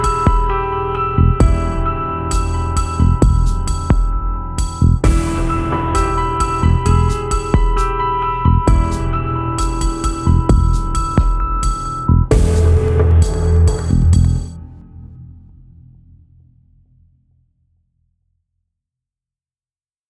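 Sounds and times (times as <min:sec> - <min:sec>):
news music bed: 0:00.0 - 0:14.9.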